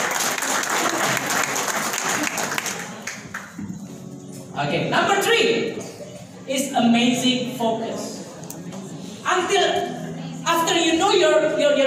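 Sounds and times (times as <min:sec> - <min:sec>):
audience applause: 0:00.0 - 0:03.6
speech: 0:04.6 - 0:05.9, 0:06.5 - 0:08.2, 0:09.4 - 0:09.9, 0:11.0 - 0:11.8.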